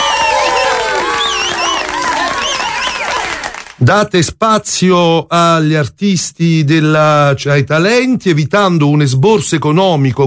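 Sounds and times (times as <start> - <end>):
crowd cheering and whooping: 0.0 - 3.7
audience applause: 0.0 - 3.8
speech: 3.8 - 10.2.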